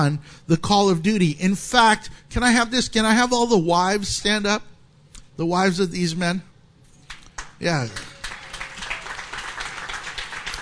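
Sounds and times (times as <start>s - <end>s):
speech: 0.0s - 4.7s, 5.4s - 6.5s, 7.6s - 8.1s
crowd applauding: 7.1s - 10.6s.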